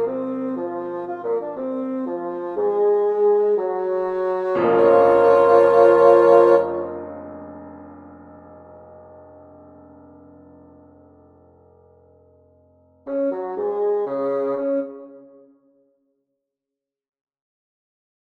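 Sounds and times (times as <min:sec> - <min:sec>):
saxophone: 0:00.0 - 0:07.0, 0:13.1 - 0:15.6
piano: 0:00.0 - 0:15.8.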